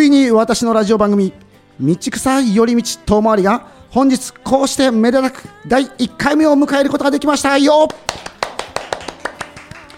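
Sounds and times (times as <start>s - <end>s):
speech: 0.0s - 8.3s
single person's hand claps: 7.8s - 9.9s.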